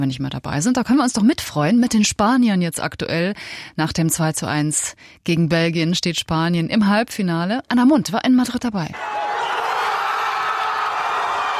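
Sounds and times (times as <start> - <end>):
speech: 0.0 - 9.2
crowd cheering on the Plaza Colón in Madrid after Spain's goal: 9.0 - 11.5.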